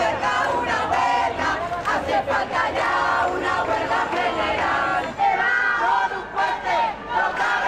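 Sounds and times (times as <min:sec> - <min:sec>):
marchers chanting slogans at a large housing protest: 0:00.0 - 0:07.6.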